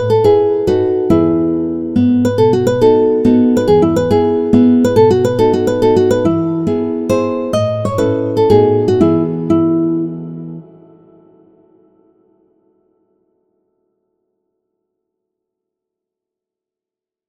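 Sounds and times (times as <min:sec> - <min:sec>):
guitar playing an opera aria: 0:00.0 - 0:12.8.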